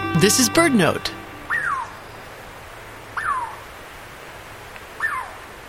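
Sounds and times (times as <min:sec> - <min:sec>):
speech: 0:00.2 - 0:01.2
Douglas squirrel call: 0:01.5 - 0:02.1, 0:03.1 - 0:03.7, 0:05.0 - 0:05.4.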